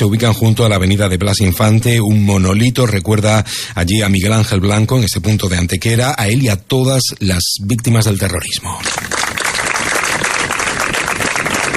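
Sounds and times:
speech: 0:00.0 - 0:09.2
applause at a memorial ceremony: 0:08.7 - 0:11.7.

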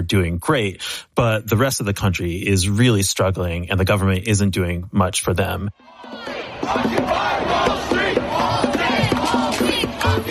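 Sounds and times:
speech: 0:00.0 - 0:10.2
protest crowd chanting: 0:05.7 - 0:10.2.

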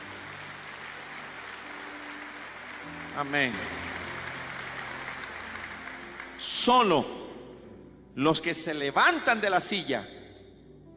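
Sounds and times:
audience applause: 0:00.0 - 0:07.0
speech: 0:03.2 - 0:03.8, 0:06.6 - 0:07.2, 0:08.2 - 0:10.2.

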